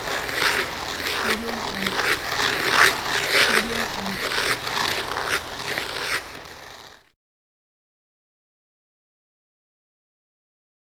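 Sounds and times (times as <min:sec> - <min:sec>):
ice skates on ice: 0:00.0 - 0:07.2.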